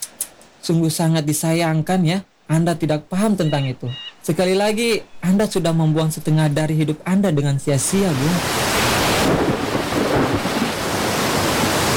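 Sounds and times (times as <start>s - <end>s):
wind: 0.0s - 11.9s
speech: 0.6s - 9.7s
deep rumbling thunder: 7.6s - 11.9s
rain: 7.8s - 11.9s.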